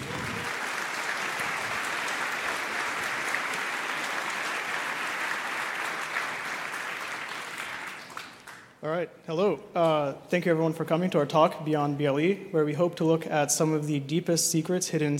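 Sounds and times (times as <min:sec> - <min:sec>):
audience applause welcoming speakers: 0:00.0 - 0:08.8
speech: 0:08.8 - 0:15.1.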